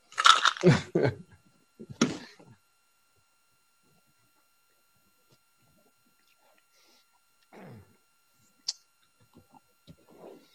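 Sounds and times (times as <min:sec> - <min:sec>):
crunching and chewing a snack: 0:00.1 - 0:00.7.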